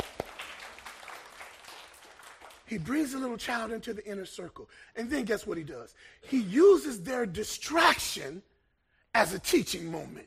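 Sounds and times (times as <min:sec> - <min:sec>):
audience applause: 0:00.0 - 0:02.7
speech: 0:02.7 - 0:08.5, 0:09.2 - 0:10.2.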